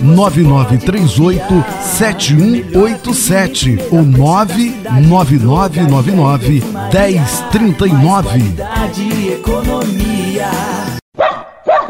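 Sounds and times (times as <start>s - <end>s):
speech: 0.1s - 11.3s
puppy barking in a radio advert for a pet and farm supply store: 11.2s - 11.8s.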